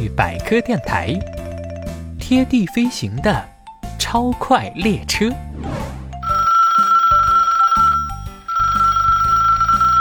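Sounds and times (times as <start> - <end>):
speech: 0.0 - 1.4, 2.3 - 5.8
telephone ringing with a bright electronic ringtone: 6.2 - 10.0.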